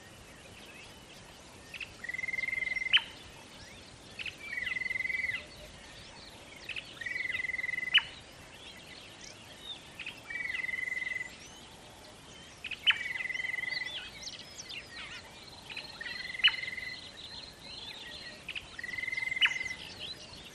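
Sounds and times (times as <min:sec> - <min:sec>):
bush ambience at a water hole in the early morning: 0:00.0 - 0:20.5.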